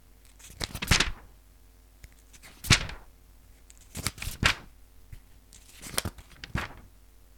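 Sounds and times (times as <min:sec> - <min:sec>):
paper page turning: 0:00.3 - 0:01.3, 0:02.2 - 0:03.1, 0:03.7 - 0:06.9.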